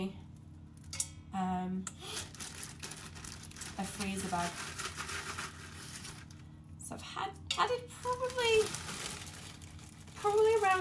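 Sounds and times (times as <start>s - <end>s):
speech: 0.0s - 0.2s, 1.4s - 2.2s, 3.8s - 4.8s, 6.9s - 9.0s, 10.2s - 10.7s
low steady hum: 0.0s - 10.7s
aluminium foil crinkling as chopped garlic is wrapped: 2.0s - 6.6s, 7.5s - 10.7s.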